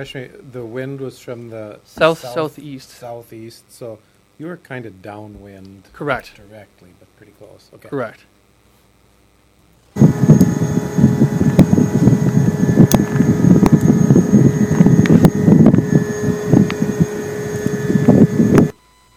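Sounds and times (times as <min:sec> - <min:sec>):
speech: 0:00.0 - 0:08.3
screechy vacuum-like grain dryer whine: 0:10.0 - 0:19.1.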